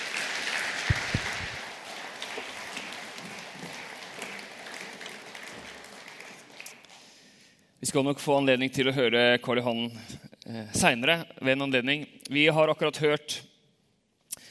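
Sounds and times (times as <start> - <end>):
audience applauding: 0.0 - 6.9
speech: 7.8 - 13.5.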